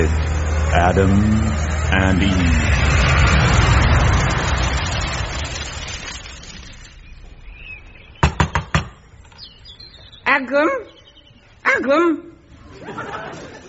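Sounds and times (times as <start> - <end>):
speech: 0.0 - 3.0, 10.4 - 11.0, 11.6 - 13.6
broad noise: 0.0 - 13.6
knocking on a door: 8.2 - 9.0
laughter: 12.6 - 13.6.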